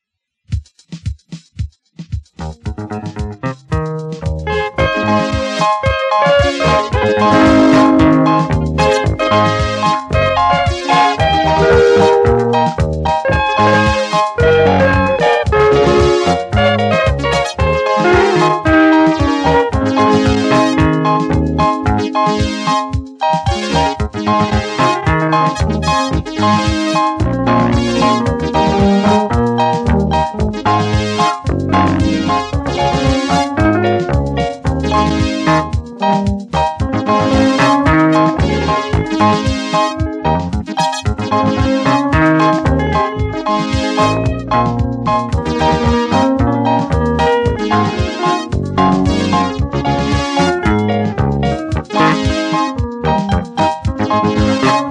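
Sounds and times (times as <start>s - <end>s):
African style instrumental music: 0.8s - 54.8s.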